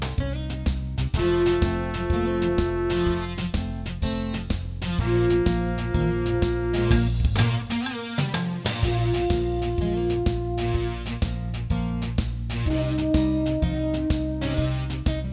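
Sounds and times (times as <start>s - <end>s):
funky beat: 0.0s - 15.3s
brass practice: 1.2s - 3.7s, 4.9s - 7.7s, 8.8s - 11.7s, 12.6s - 15.3s.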